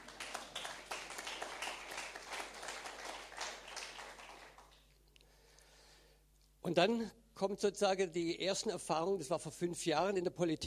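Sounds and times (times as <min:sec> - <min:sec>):
audience clapping: 0:00.0 - 0:05.0
speech: 0:06.7 - 0:10.6.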